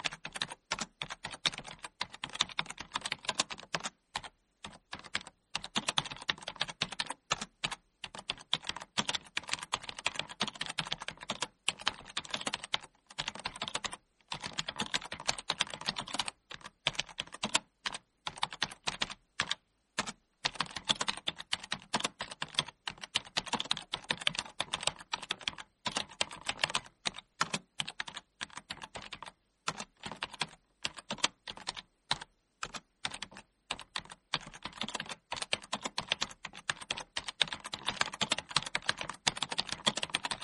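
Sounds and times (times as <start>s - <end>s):
typing on a computer keyboard: 0.0s - 40.4s.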